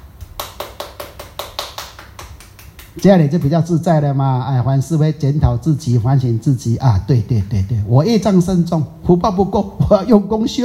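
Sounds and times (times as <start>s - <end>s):
audience clapping hands: 0.2s - 3.6s
speech: 3.0s - 10.6s.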